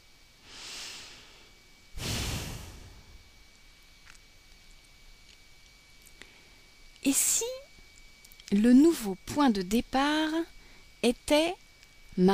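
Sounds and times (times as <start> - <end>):
slow soft breathing during a guided relaxation: 0.4 - 3.2
speech: 7.0 - 7.6, 8.5 - 11.6, 12.2 - 12.3.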